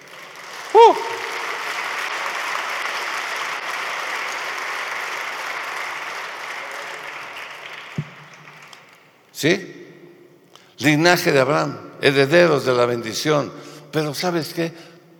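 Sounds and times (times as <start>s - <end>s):
audience applause: 0.0s - 9.0s
speech: 0.8s - 1.1s, 9.4s - 9.7s, 10.8s - 14.9s
sharp thump: 8.0s - 8.2s.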